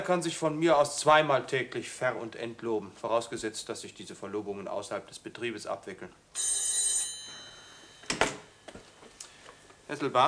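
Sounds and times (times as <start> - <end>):
speech: 0.0 - 6.6, 9.9 - 10.2
telephone bell ringing with an incoming call: 6.3 - 8.9.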